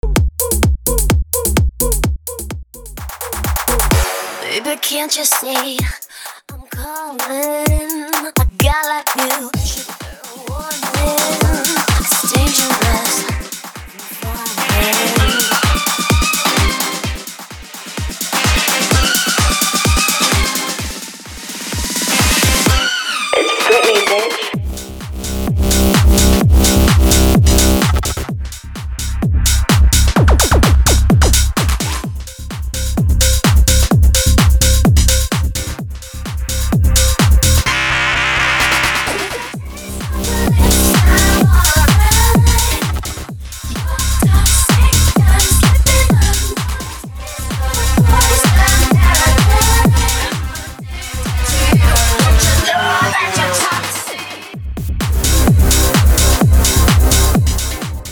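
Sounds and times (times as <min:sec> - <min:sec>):
tech house track: 0:00.0 - 0:58.1.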